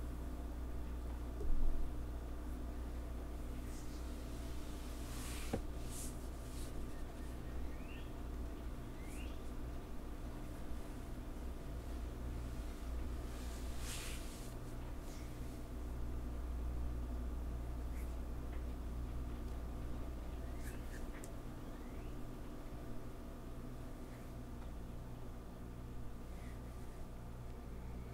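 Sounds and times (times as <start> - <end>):
low steady hum: 0.0 - 28.1
hair play and back scratch brushing and scratching strokes: 3.5 - 7.4, 11.7 - 15.7.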